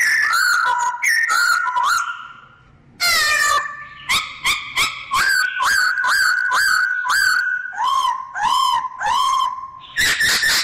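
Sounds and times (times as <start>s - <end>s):
bird singing: 0.0s - 10.6s.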